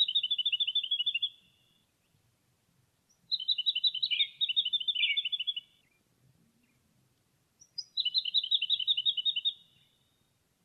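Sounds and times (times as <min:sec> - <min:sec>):
jacky winter calling: 0:00.0 - 0:01.9, 0:03.1 - 0:06.0, 0:07.6 - 0:10.2.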